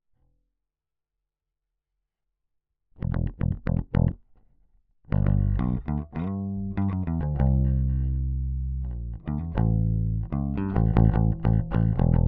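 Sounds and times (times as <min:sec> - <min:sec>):
bass: 0:03.0 - 0:04.3, 0:05.1 - 0:12.2.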